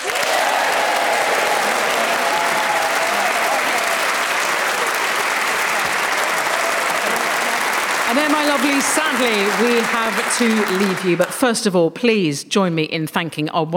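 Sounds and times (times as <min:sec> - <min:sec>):
audience applause: 0:00.0 - 0:11.4
speech: 0:08.2 - 0:13.7.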